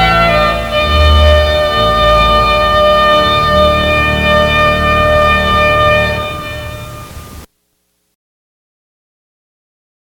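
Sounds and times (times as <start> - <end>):
trumpet piece: 0.0 - 7.5.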